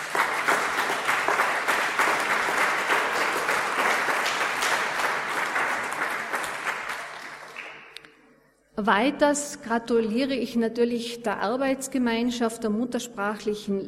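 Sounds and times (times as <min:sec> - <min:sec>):
audience applause for the children: 0:00.0 - 0:08.0
speech: 0:08.8 - 0:13.8.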